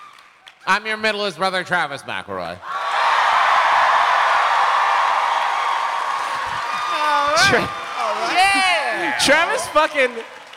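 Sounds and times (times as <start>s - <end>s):
speech: 0.6s - 2.8s, 7.5s - 7.8s, 9.2s - 10.4s
higher whoops and shouts: 2.6s - 10.2s
live audience cheering: 2.7s - 10.5s.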